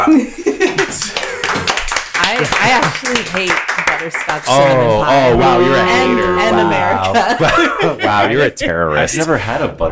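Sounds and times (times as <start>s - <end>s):
laughter: 0.0s - 1.7s, 4.5s - 9.5s
hands clapping: 0.0s - 4.8s
speech: 0.1s - 0.4s, 2.4s - 9.9s.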